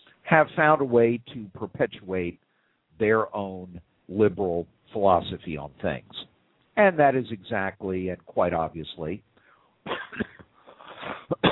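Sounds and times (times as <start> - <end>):
speech: 0.3 - 2.4, 3.0 - 9.3
person coughing harshly: 9.9 - 11.5.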